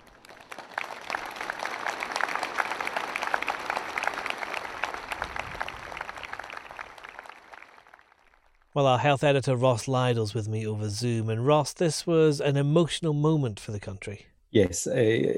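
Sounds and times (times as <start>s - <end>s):
hospital staff and patients applauding: 0.0s - 8.8s
speech: 8.8s - 15.3s.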